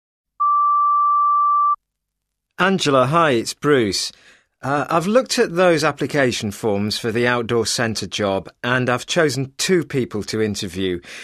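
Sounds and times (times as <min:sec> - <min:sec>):
voicemail tone before recording a message: 0:00.4 - 0:01.8
speech: 0:02.6 - 0:11.2.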